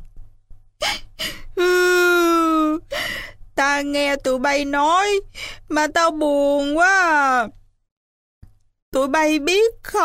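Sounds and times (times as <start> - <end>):
voice imitating a crying toad's sobbing: 0.8 - 2.9
speech: 3.6 - 7.6, 8.9 - 10.0.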